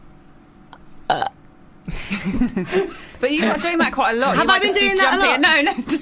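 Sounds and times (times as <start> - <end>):
burps used as a buzzer: 1.1 - 1.4
speech: 1.1 - 6.0.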